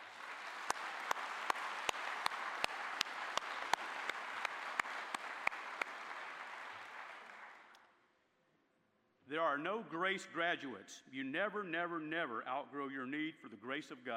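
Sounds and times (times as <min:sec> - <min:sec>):
audience applause: 0:00.0 - 0:07.8
speech: 0:09.4 - 0:14.1.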